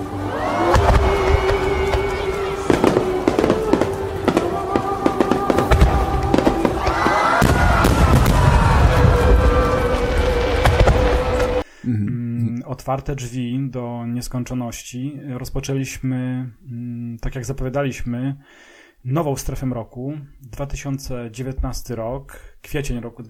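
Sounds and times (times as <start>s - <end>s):
fireworks exploding: 0.1s - 11.7s
speech: 12.9s - 23.2s.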